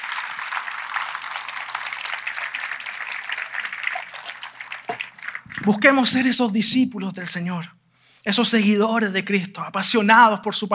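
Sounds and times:
audience applauding: 0.0 - 6.4
speech: 5.6 - 10.7.

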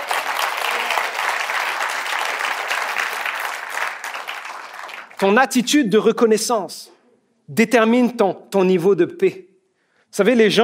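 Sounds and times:
audience applauding: 0.0 - 5.4
speech: 5.2 - 9.5, 10.1 - 10.6.

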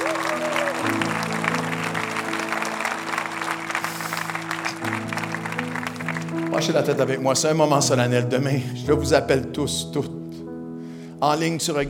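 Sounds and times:
church congregation clapping in an ovation: 0.0 - 7.5
speech: 6.6 - 10.2, 11.2 - 11.8.

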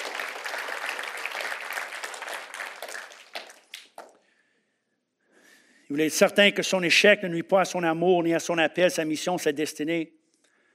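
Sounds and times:
audience applause: 0.0 - 4.1
speech: 5.9 - 10.2.

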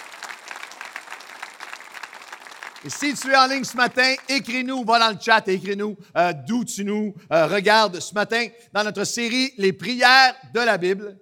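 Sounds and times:
audience applause welcoming the online community at a Bible-prayer series gathering: 0.0 - 4.6
speech: 2.8 - 11.2.

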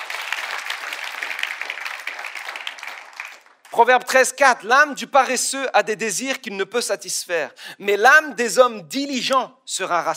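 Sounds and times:
audience applause: 0.0 - 3.7
speech: 3.7 - 10.1.

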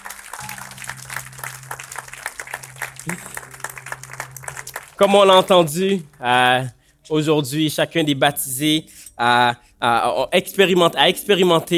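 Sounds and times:
crowd applause for the baptized: 0.0 - 6.3
speech: 3.0 - 3.3, 5.0 - 11.7.

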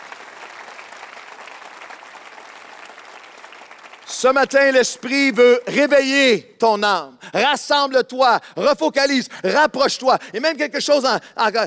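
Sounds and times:
audience applauding: 0.0 - 5.4
speech: 4.1 - 11.6.

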